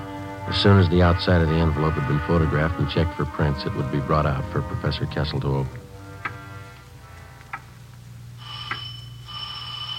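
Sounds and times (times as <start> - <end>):
low steady hum: 0.0 - 9.9
speech: 0.5 - 5.8
front doorbell ringing: 8.4 - 9.9.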